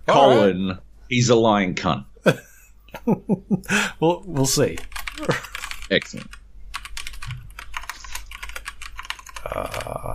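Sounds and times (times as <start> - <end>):
speech: 0.1 - 6.4, 9.5 - 10.1
rapid typing on a computer keyboard: 4.7 - 9.9.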